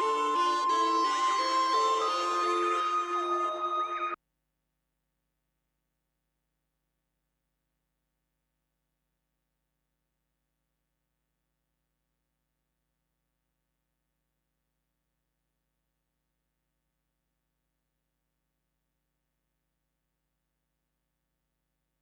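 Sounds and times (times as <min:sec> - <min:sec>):
synth: 0:00.0 - 0:04.2.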